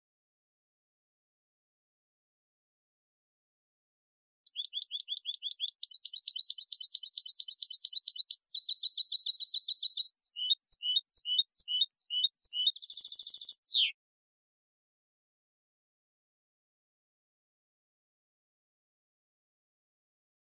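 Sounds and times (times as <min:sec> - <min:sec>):
European goldfinch singing: 0:04.5 - 0:14.0.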